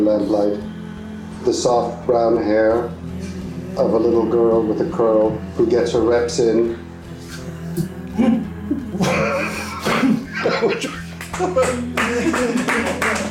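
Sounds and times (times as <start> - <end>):
speech: 0.0 - 0.8, 1.4 - 6.8
harmonic vocal sounds: 0.0 - 13.2
murmur of voices: 1.6 - 13.2
laughter: 8.1 - 13.2
light scattered applause of a modest crowd: 10.9 - 13.2.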